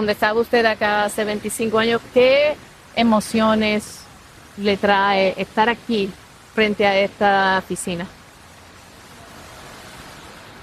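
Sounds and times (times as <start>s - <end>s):
speech: 0.0s - 4.0s, 4.6s - 8.2s
water falling at the North Tower footprint of the 9/11 memorial: 0.0s - 10.6s.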